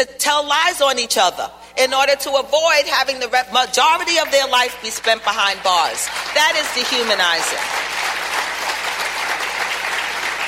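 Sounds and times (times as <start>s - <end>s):
speech: 0.0s - 8.0s
audience applause: 6.0s - 10.4s.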